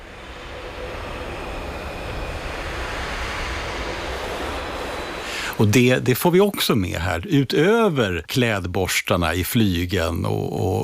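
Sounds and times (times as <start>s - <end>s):
brass players blowing air through instruments: 0.0s - 6.4s
speech: 5.6s - 10.8s.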